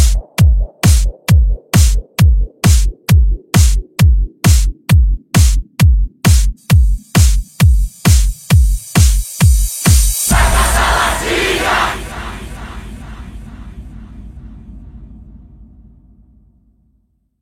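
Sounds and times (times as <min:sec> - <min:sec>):
electro funk music: 0:00.0 - 0:11.8.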